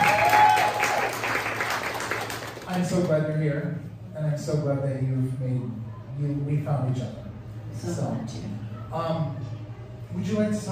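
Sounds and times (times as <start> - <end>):
audience applause: 0.0 - 2.9
speech: 2.9 - 7.2, 7.8 - 9.5, 10.1 - 10.7.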